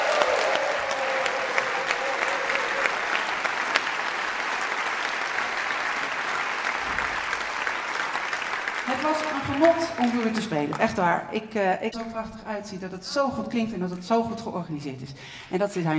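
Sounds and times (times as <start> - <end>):
audience applause: 0.0 - 11.1
speech: 9.1 - 15.9.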